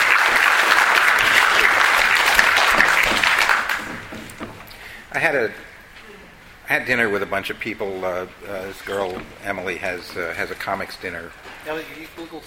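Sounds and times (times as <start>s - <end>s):
audience applause: 0.0s - 4.8s
speech: 5.2s - 5.7s, 6.7s - 12.4s.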